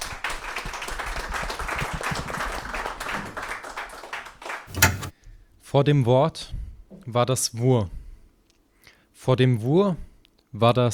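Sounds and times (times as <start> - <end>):
audience applause: 0.0 - 4.7
speech: 5.7 - 8.0, 9.2 - 10.9.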